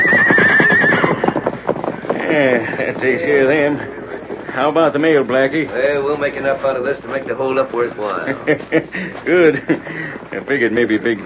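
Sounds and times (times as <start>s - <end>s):
horses whinnying as they are unhitched from a wagon: 0.0s - 3.9s
hooves of horses being driven off clip-clopping: 0.0s - 11.2s
speech: 2.4s - 4.0s, 4.6s - 11.2s
laughter: 7.9s - 10.4s.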